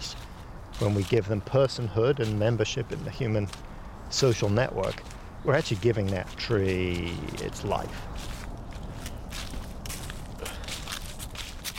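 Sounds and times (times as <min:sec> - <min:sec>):
people's footsteps crunching in a forest: 0:00.0 - 0:11.7
speech: 0:00.8 - 0:08.3.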